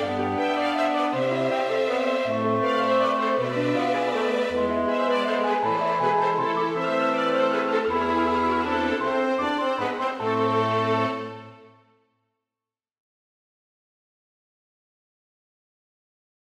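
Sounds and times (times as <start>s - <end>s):
violin and small ensemble: 0.0s - 11.7s.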